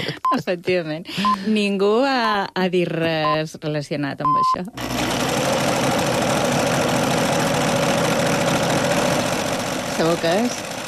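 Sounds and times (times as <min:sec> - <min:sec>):
speech: 0:00.0 - 0:05.8, 0:10.0 - 0:10.8
sewing machine running: 0:04.7 - 0:10.8.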